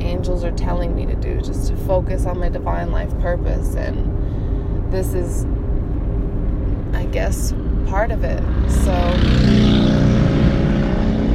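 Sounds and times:
speech: 0:00.4 - 0:04.3, 0:04.9 - 0:05.6, 0:06.9 - 0:09.7
motorcycle engine droning: 0:02.5 - 0:11.3.

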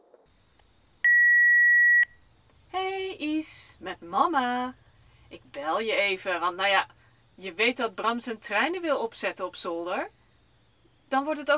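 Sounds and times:
hiss: 0:00.0 - 0:11.5
voicemail beep: 0:01.0 - 0:02.2
speech: 0:03.2 - 0:10.2, 0:11.1 - 0:11.5.

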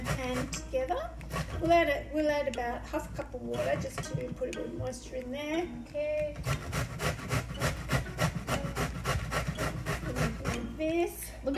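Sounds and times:
zucchini and carrot being grated: 0:00.0 - 0:02.0, 0:03.5 - 0:04.2, 0:06.4 - 0:10.8
speech: 0:00.2 - 0:07.1, 0:10.8 - 0:11.5.

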